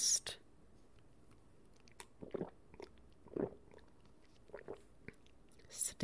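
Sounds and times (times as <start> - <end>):
wet noises: 0.9 - 5.8.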